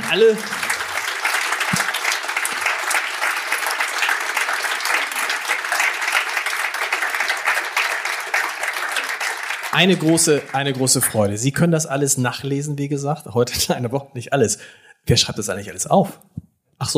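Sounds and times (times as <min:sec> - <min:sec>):
audience applause: 0:00.0 - 0:11.5
speech: 0:00.1 - 0:00.7, 0:09.8 - 0:16.9.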